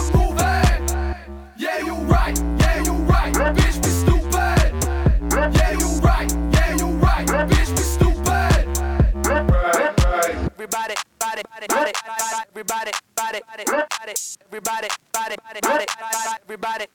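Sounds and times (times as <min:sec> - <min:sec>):
vocal samples: 0:00.0 - 0:16.9.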